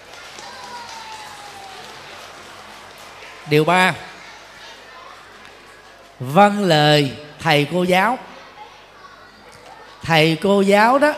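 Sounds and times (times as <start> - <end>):
children applauding loudly: 0.0 - 5.9
speech: 3.4 - 4.1, 6.2 - 8.3, 10.1 - 11.1.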